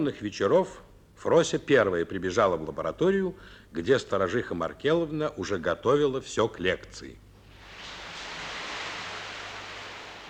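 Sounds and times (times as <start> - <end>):
speech: 0.0 - 7.2
heavy rain: 7.5 - 10.2.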